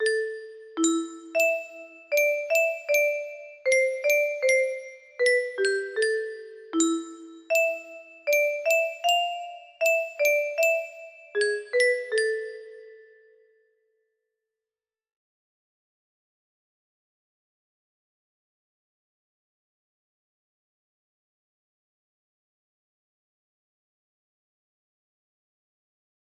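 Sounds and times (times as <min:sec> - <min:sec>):
music box: 0:00.0 - 0:13.4.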